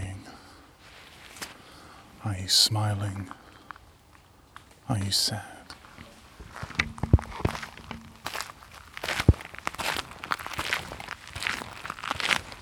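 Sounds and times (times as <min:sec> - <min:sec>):
speech: 0:02.2 - 0:03.4, 0:04.9 - 0:05.6
brisk footsteps crunching along at night: 0:03.6 - 0:12.6.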